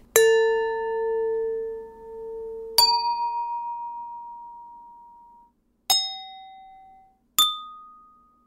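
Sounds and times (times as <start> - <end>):
drinking glass struck, ringing ping: 0.1 - 8.4.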